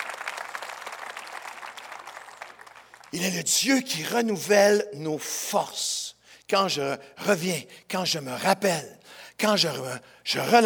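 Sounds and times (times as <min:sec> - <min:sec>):
audience applauding: 0:00.0 - 0:03.2
speech: 0:03.1 - 0:10.6.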